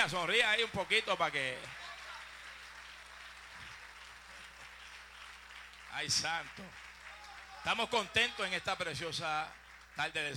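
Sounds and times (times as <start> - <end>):
speech: 0.0 - 1.8, 6.0 - 6.9, 7.6 - 10.3
audience applauding: 0.0 - 10.3.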